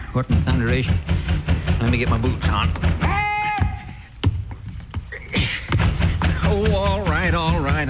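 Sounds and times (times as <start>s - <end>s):
speech: 0.1s - 1.2s, 1.8s - 3.2s
heavy thuds pounding on wooden door: 0.3s - 4.5s, 5.7s - 7.8s.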